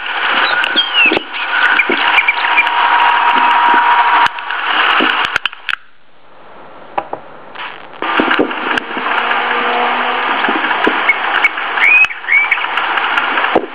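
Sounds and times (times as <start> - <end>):
Western Orphean warbler singing a scratchy chattering warble: 0.1 - 5.4, 8.0 - 13.6.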